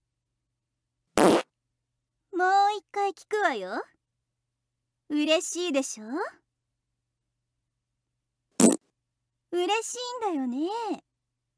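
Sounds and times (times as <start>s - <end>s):
fart: 1.2s - 1.5s, 8.6s - 8.8s
speech: 2.4s - 4.0s, 5.1s - 6.4s, 9.5s - 11.1s.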